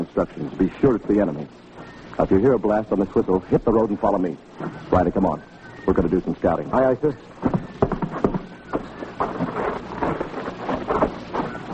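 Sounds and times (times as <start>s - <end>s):
windy hiss: 0.0s - 11.7s
speech: 0.2s - 7.5s
battalion of soldiers marching: 3.0s - 11.7s.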